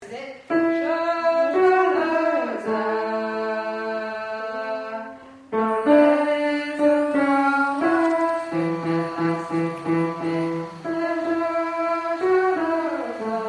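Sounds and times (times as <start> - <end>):
tenor singing: 0.0 - 13.4.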